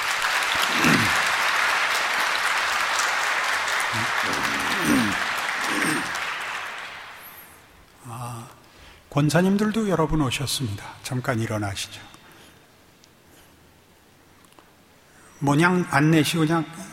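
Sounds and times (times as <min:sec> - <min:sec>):
audience applauding: 0:00.0 - 0:07.7
murmuring voices: 0:03.9 - 0:06.2
speech: 0:09.2 - 0:12.2, 0:15.4 - 0:16.9.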